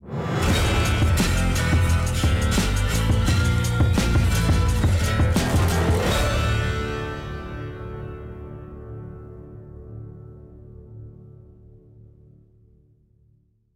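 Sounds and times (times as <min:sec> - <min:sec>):
boss win victory music: 0:00.0 - 0:10.0.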